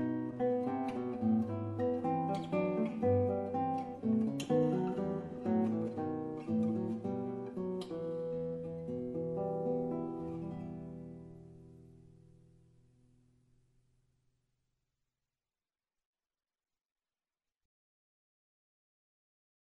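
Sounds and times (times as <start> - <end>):
guitar playing Advent music: 0.0 - 12.6.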